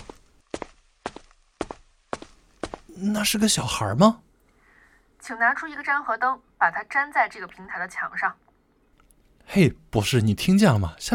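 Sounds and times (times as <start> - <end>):
footsteps walking down stairs: 0.0 - 3.0
speech: 3.0 - 4.2, 5.3 - 8.4, 9.5 - 11.1.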